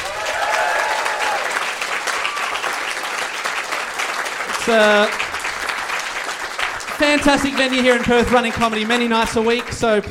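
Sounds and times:
people whooping: 0.0 - 2.9
audience applause: 0.0 - 10.0
speech: 4.7 - 5.2, 7.0 - 10.0.

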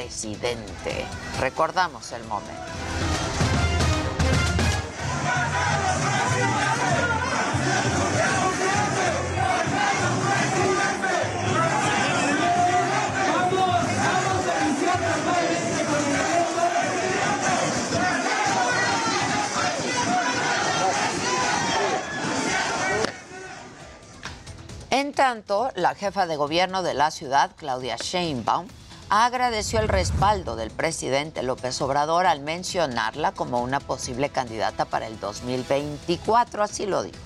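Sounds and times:
speech: 0.0 - 2.8, 25.2 - 37.2
large crowd cheering and chanting: 2.6 - 24.3.

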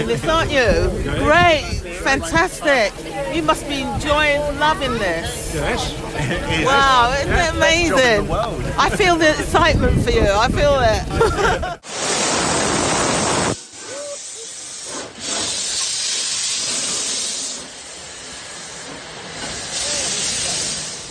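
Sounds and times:
speech: 0.0 - 11.9
laughter: 5.0 - 10.0, 10.8 - 11.8
famous steam locomotive puffing out of Doncaster Station: 11.8 - 21.1.

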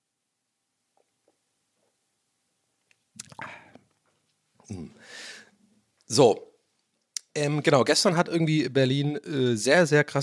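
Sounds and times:
mouth clicks: 3.1 - 4.0, 7.0 - 7.4
slurping and swallowing a drink to soothe a dry throat: 3.2 - 3.9
speech: 4.7 - 5.2, 6.1 - 6.5, 7.4 - 10.2.

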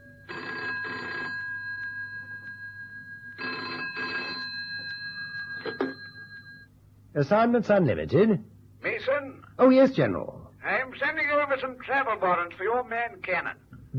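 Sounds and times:
telephone ringing: 0.0 - 6.8
speech: 7.2 - 8.5, 9.6 - 10.4, 11.5 - 13.9.

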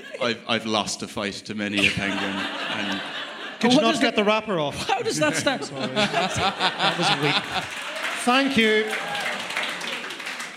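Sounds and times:
laughter: 0.0 - 0.9, 1.7 - 10.2
speech: 0.1 - 9.2
audience clapping: 6.1 - 10.5.

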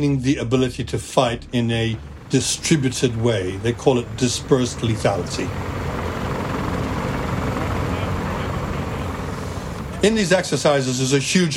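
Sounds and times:
speech: 0.0 - 5.8, 10.0 - 11.5
military helicopters taking off and clattering: 0.0 - 11.5.

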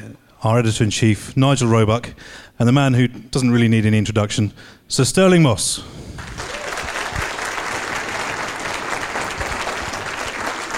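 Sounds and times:
speech: 0.1 - 6.0
audience applause: 6.2 - 10.7.

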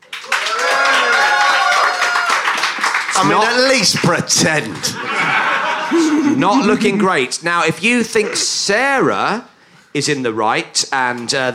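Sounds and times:
live audience clapping: 0.0 - 5.1
speech: 3.2 - 5.2, 5.9 - 11.5
people laughing: 3.2 - 7.3.

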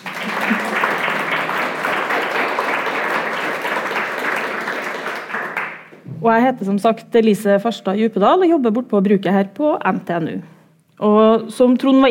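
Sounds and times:
audience applause: 0.0 - 6.0
speech: 6.2 - 12.0.

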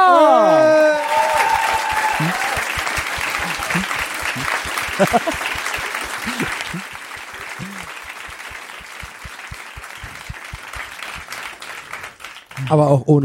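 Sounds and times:
enthusiastic audience applause: 0.0 - 12.9
laughter: 1.8 - 8.0
speech: 5.0 - 5.4, 12.7 - 13.2.

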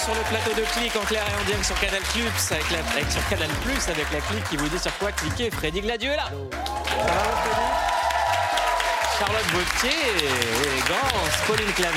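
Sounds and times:
studio audience cheers and whoops: 0.0 - 1.0, 6.5 - 9.6
speech: 0.0 - 8.0, 9.2 - 11.9
studio audience applause: 0.0 - 11.9.

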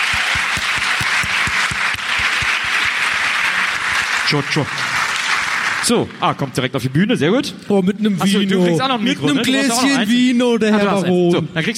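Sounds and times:
audience applause: 0.0 - 6.1
speech: 4.3 - 5.0, 5.8 - 11.7.

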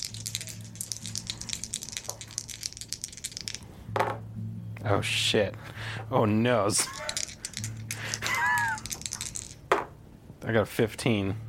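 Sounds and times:
dice rattling and clattering: 0.0 - 3.7, 6.8 - 9.8
steady low hum: 0.0 - 10.4
speech: 4.9 - 7.0, 10.5 - 11.4.

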